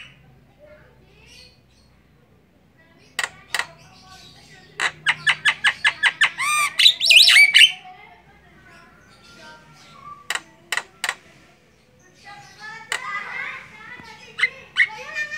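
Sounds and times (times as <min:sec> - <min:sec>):
Javan myna singing with clicks and chattering notes: 0:03.0 - 0:07.7, 0:10.2 - 0:11.3, 0:12.3 - 0:15.3.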